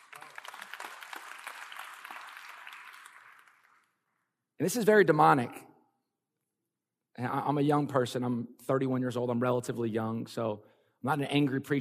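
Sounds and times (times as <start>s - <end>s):
audience clapping: 0.0s - 4.3s
speech: 4.6s - 5.7s, 7.2s - 11.8s.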